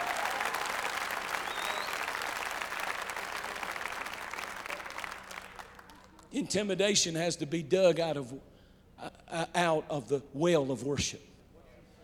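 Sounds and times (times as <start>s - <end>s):
audience clapping hands in worship: 0.0s - 6.3s
speech: 6.3s - 8.5s, 9.4s - 11.3s.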